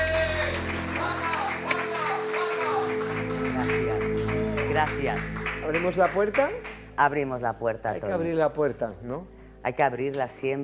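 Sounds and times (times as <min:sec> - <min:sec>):
audience applause: 0:00.0 - 0:06.9
sustained musical tones: 0:00.0 - 0:10.1
speech: 0:04.8 - 0:10.6.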